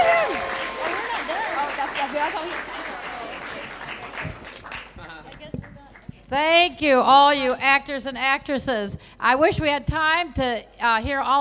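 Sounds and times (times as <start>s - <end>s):
audience applause: 0.0s - 5.2s
speech: 6.3s - 11.3s.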